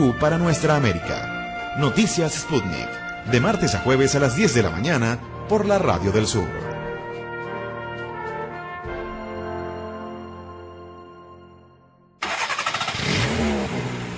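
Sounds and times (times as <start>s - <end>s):
speech: 0.0s - 6.7s
engine starting: 12.2s - 14.1s.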